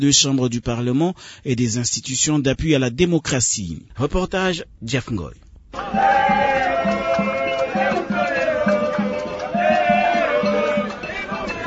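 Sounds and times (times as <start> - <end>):
speech: 0.0 - 7.0
large crowd at a court ceremony: 5.7 - 11.6.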